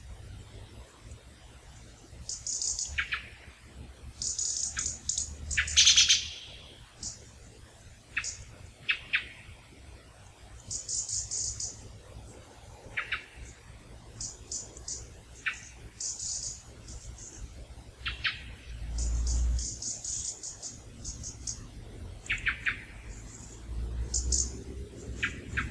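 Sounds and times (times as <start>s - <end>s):
European robin call notes: 2.2s - 3.6s, 4.2s - 7.4s, 8.0s - 9.6s, 10.6s - 25.7s
blackbird call notes: 2.3s - 3.4s, 4.2s - 7.2s, 8.1s - 9.5s, 10.6s - 11.8s, 12.8s - 13.6s, 14.2s - 25.7s.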